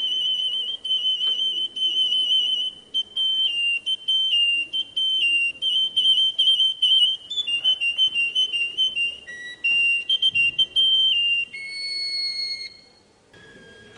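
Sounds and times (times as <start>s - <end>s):
domestic Atlantic canary of the Russian song type singing whistled trills: 0.0s - 13.0s.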